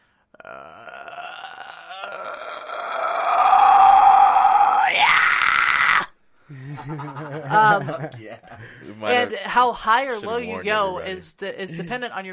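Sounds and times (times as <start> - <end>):
distorted vocal fry scream: 0.4 - 6.2
laughter: 6.5 - 9.4
speech: 7.6 - 12.3.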